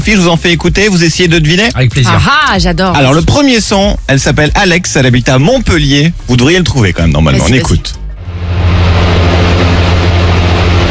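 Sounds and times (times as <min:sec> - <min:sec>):
speech: 0:00.0 - 0:08.0
electric fan running: 0:08.2 - 0:10.8.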